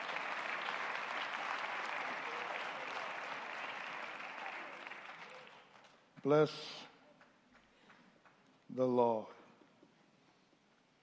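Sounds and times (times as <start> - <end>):
audience hand clapping for the choir: 0.0 - 6.4, 7.1 - 8.7
speech: 6.2 - 6.8, 8.7 - 9.4.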